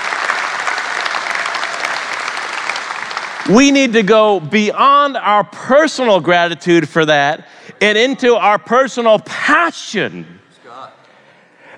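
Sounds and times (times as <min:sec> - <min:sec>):
large audience round of applause: 0:00.0 - 0:03.8
speech: 0:03.4 - 0:11.0.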